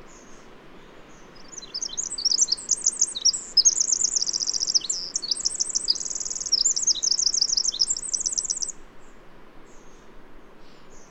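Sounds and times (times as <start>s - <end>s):
soft background hiss: 0.0s - 11.0s
bird singing: 1.1s - 8.7s.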